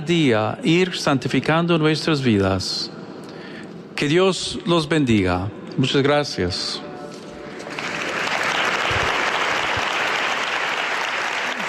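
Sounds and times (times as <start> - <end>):
speech: 0.1 - 3.0, 4.0 - 6.9
audience applause after a Spanish-language religious address: 7.7 - 11.6.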